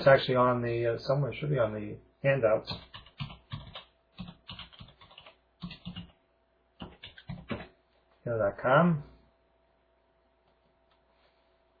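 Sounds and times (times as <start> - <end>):
speech: 0.0 - 3.0, 8.3 - 9.1
typing a web address on a computer keyboard: 2.7 - 6.2, 6.8 - 7.7.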